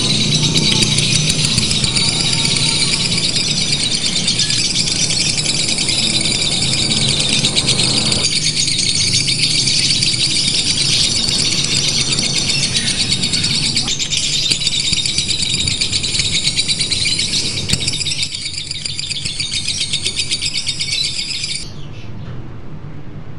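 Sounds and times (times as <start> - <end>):
lovebird singing in a simulated contest: 0.0 - 22.0.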